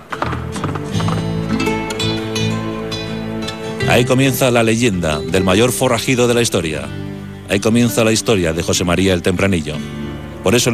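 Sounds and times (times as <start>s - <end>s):
horse hooves galloping: 0.0s - 3.6s
steady sustained musical backing: 0.0s - 10.7s
speech: 3.9s - 10.7s.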